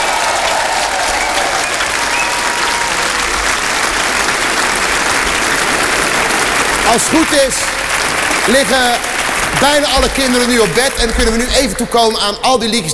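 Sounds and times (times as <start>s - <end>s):
audience applause: 0.0s - 11.8s
speech: 6.9s - 7.8s, 8.5s - 12.9s.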